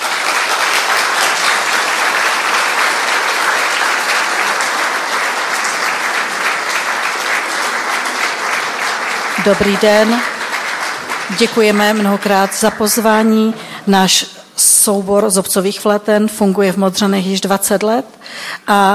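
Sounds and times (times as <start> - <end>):
audience applause welcoming performers: 0.0 - 13.9
speech: 9.5 - 10.3, 11.3 - 18.9.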